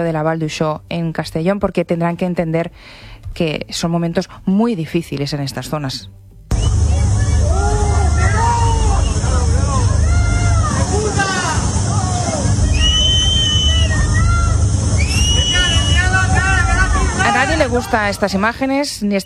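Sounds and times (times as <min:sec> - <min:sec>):
speech: 0:00.0 - 0:06.2, 0:17.7 - 0:19.2
angry residents shouting at arriving politician Pedro Sánchez: 0:06.7 - 0:18.5.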